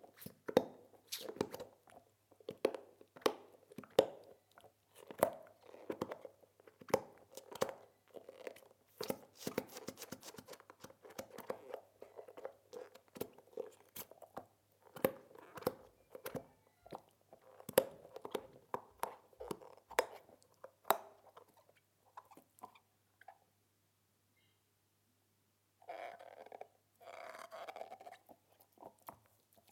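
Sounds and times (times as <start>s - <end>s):
dog gnawing on a rubber ball: 0.0s - 23.4s, 25.8s - 29.7s.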